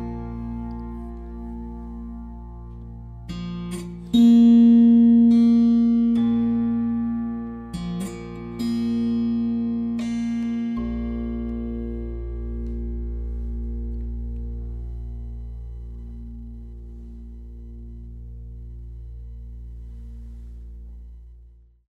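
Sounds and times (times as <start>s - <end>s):
tambura with vaulted body tuned F-B-B-B played dynamically: 0.0s - 15.4s.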